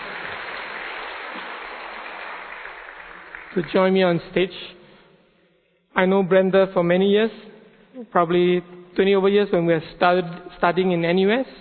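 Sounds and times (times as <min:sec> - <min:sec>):
audience applauding to welcome a guest on stage: 0:00.0 - 0:04.4
speech: 0:03.6 - 0:04.8, 0:06.0 - 0:11.5.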